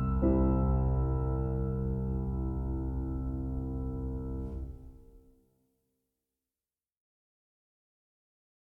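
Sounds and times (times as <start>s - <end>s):
solo piano rondo in F minor: 0.0s - 5.2s.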